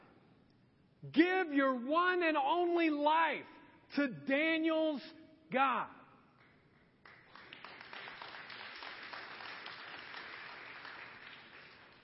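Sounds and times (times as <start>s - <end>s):
speech: 1.0s - 6.0s
audience applause: 7.0s - 12.0s.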